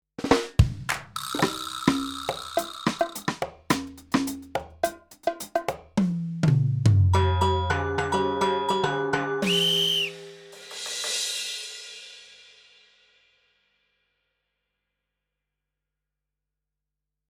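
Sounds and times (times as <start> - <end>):
percussion: 0.2 - 13.0.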